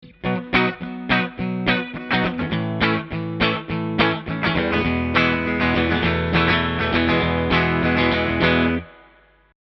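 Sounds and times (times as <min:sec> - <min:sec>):
clean electric guitar: 0:00.0 - 0:09.4.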